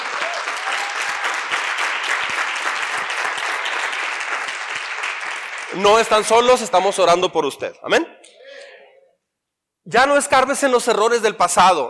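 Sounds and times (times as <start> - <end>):
audience applause: 0.0 - 6.2
speech: 5.8 - 8.2, 9.9 - 11.8.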